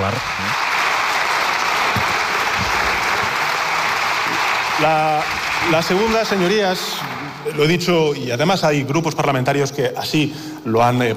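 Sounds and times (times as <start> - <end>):
speech: 0.0 - 0.7, 4.8 - 11.1
applause from parliament benches: 0.0 - 7.6.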